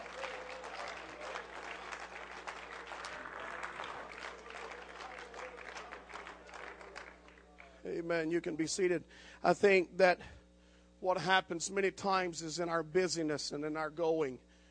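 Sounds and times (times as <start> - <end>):
audience clapping: 0.0 - 7.8
speech: 7.9 - 10.4, 11.0 - 14.5.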